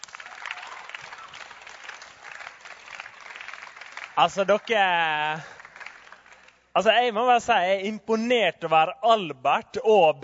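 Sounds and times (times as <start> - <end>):
audience applause: 0.0 - 6.6
speech: 4.2 - 5.6, 6.8 - 10.2.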